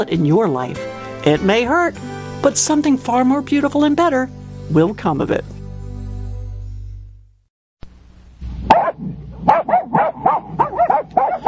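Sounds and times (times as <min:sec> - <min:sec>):
speech: 0:00.0 - 0:05.6
dog barking: 0:08.7 - 0:11.4.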